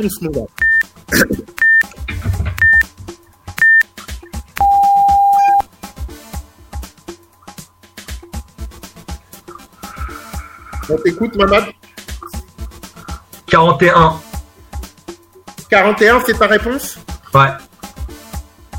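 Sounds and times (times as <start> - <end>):
speech: 0.0 - 1.5, 10.9 - 11.8, 13.6 - 14.3, 15.7 - 17.7
quiz countdown timer beeping: 0.6 - 0.9, 1.5 - 1.9, 2.6 - 2.9, 3.6 - 3.9, 4.6 - 5.6
clattering sound: 1.9 - 3.2.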